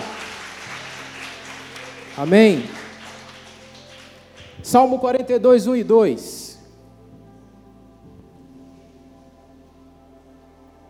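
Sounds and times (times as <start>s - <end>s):
audience applauding: 0.0s - 5.1s
speech: 2.2s - 2.8s, 4.6s - 6.4s.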